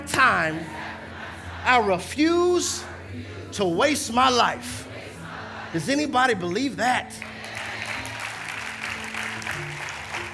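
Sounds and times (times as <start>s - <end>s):
speech: 0.0s - 0.9s, 1.6s - 4.9s, 5.7s - 7.3s
applause from a large crowd: 7.2s - 10.3s.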